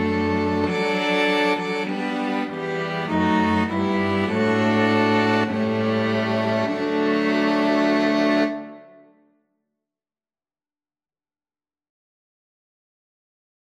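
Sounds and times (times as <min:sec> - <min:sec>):
national anthem played by string quartet: 0:00.0 - 0:09.0.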